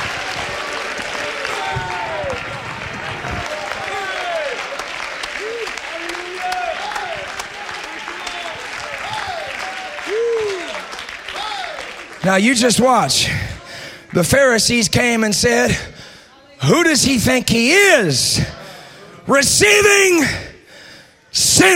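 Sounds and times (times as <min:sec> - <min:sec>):
audience clapping hands: 0:00.0 - 0:14.6
speech: 0:12.3 - 0:13.5, 0:14.1 - 0:15.9, 0:16.6 - 0:18.5, 0:19.3 - 0:20.4, 0:21.3 - 0:21.7.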